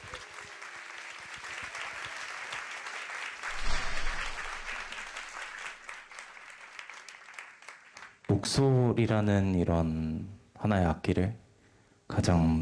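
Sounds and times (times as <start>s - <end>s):
audience applause: 0.0s - 3.6s, 4.6s - 8.1s
speech: 8.3s - 11.4s, 12.1s - 12.5s.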